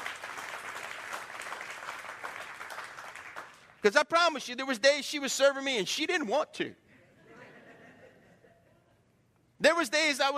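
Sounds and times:
audience applause: 0.0s - 3.7s
speech: 3.8s - 6.8s, 9.8s - 10.3s
laughter: 6.9s - 9.1s.

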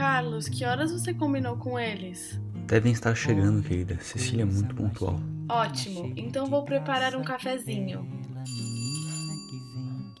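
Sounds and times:
speech: 0.2s - 8.6s
doorbell ringing: 8.4s - 10.1s.

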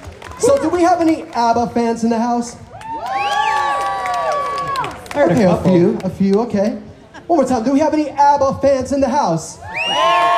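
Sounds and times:
applause: 0.0s - 1.8s, 2.7s - 6.5s
speech: 0.4s - 2.6s, 5.2s - 10.3s.

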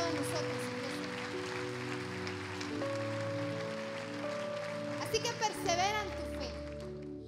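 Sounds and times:
audience applause: 0.0s - 7.0s
speech: 5.1s - 6.5s.

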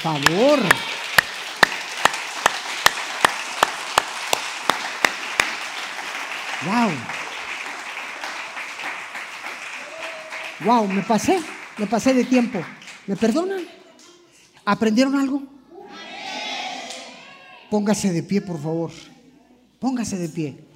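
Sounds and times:
speech: 0.0s - 0.9s, 6.6s - 7.2s, 10.6s - 13.8s, 14.6s - 15.5s, 17.7s - 19.1s, 19.8s - 20.6s
audience applause: 0.0s - 13.6s.

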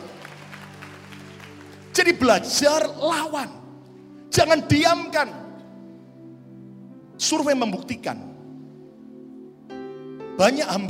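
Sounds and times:
audience applause: 0.0s - 1.9s
speech: 2.0s - 3.6s, 4.4s - 5.4s, 7.2s - 8.3s, 10.4s - 10.8s.

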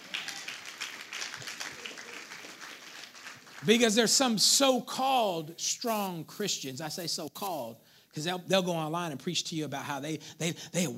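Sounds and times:
audience clapping in a large room: 0.0s - 4.1s
speech: 3.6s - 10.9s.

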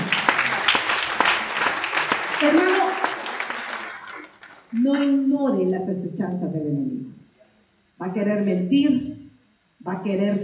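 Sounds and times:
audience applause: 0.0s - 5.1s
speech: 2.4s - 2.7s, 4.7s - 7.2s, 8.0s - 9.2s, 9.8s - 10.4s.

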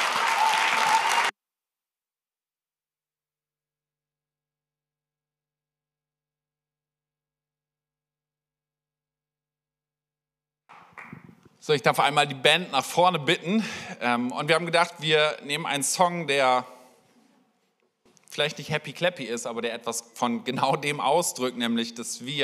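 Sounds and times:
audience applause: 0.0s - 1.3s
speech: 11.6s - 16.8s, 18.3s - 22.4s.

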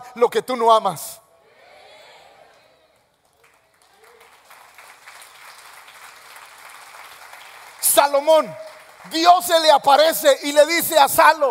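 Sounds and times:
speech: 0.2s - 1.2s, 8.0s - 11.4s
audience applause: 3.2s - 9.4s.

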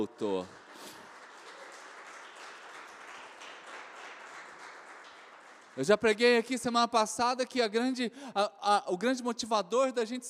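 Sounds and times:
speech: 0.0s - 1.0s, 5.8s - 10.2s
audience applauding: 0.0s - 6.2s.

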